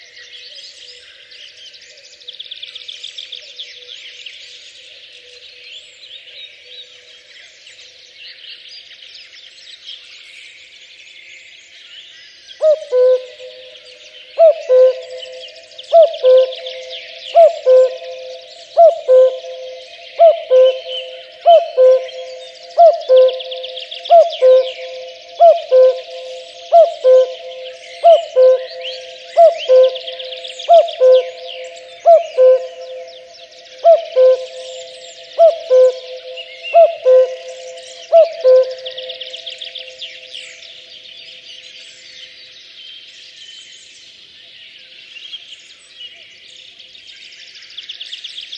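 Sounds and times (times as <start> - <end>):
chorus of small songbirds chirping: 0.0 - 48.5
common cuckoo calling: 12.6 - 40.4.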